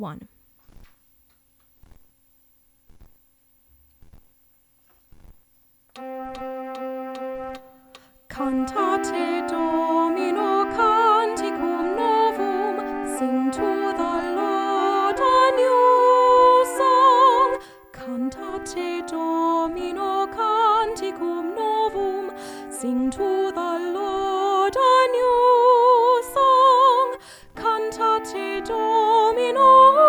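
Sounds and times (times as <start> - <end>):
soprano singing: 6.0 - 30.0.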